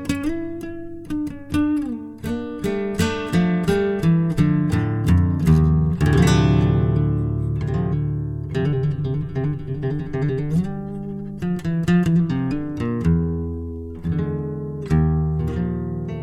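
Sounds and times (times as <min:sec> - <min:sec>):
acoustic love song: 0:00.0 - 0:16.2.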